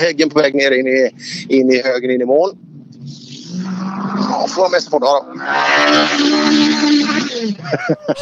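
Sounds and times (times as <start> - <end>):
racing car engine passing at high revs: 0.0 - 8.2
speech: 0.0 - 8.2
laughter: 7.6 - 8.2.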